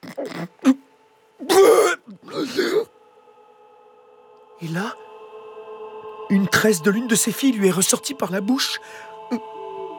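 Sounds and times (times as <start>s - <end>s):
hiccup imitated by the storyteller: 0.0s - 0.8s, 1.4s - 2.9s
speech: 0.1s - 0.8s, 4.6s - 5.0s, 6.4s - 9.5s.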